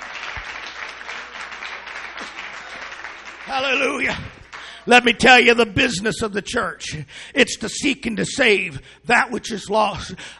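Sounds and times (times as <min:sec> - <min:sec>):
audience clapping hands: 0:00.0 - 0:04.9
speech: 0:03.5 - 0:10.3.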